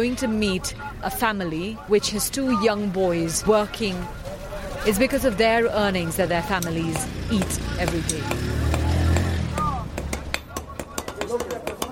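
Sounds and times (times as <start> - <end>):
speech: 0.0 - 4.2, 4.8 - 8.6
hammer beating a molten iron rod into shape: 6.6 - 11.9.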